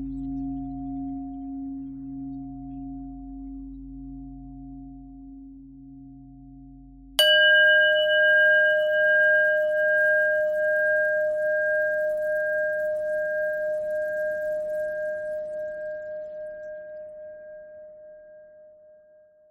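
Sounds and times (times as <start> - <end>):
pentatonic bell melody: 7.2 - 18.3.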